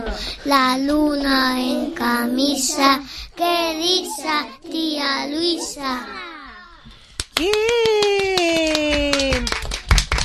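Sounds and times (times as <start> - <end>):
speech: 0.4 - 6.3, 7.4 - 9.6
children clapping: 7.2 - 10.2.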